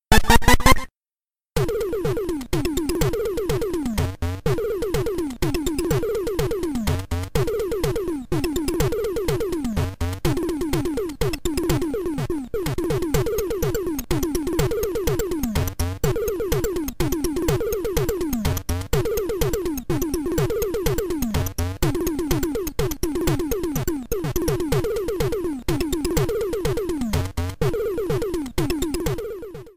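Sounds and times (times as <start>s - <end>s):
miniboss game music: 0.1s - 0.9s, 1.6s - 29.7s.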